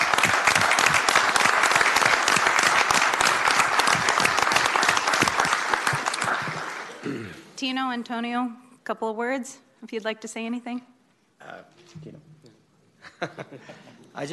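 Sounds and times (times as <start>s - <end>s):
crowd applauding: 0.0s - 7.4s
speech: 7.6s - 12.3s, 13.2s - 14.3s
laughter: 13.0s - 14.2s.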